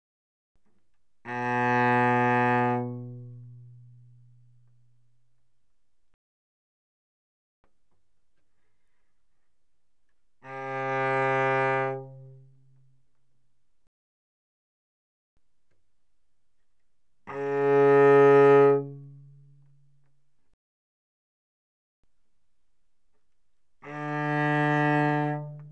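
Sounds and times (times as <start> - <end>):
cello arco mezzo forte on the G string: 1.2 - 5.5, 10.3 - 13.0, 17.2 - 20.1, 23.7 - 25.7.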